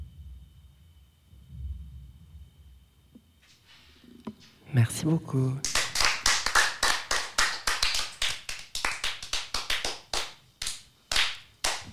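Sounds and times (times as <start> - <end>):
speech: 4.7 - 5.7
audience applause: 5.6 - 11.9.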